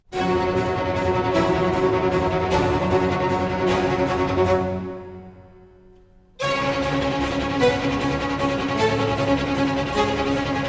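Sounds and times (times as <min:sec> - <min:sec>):
presto music: 0:00.1 - 0:10.6.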